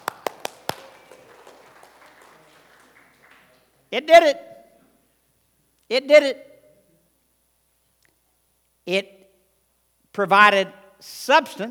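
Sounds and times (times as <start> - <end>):
applause: 0.0 - 3.8
speech: 3.9 - 4.5, 5.9 - 6.5, 8.9 - 9.2, 10.2 - 11.6.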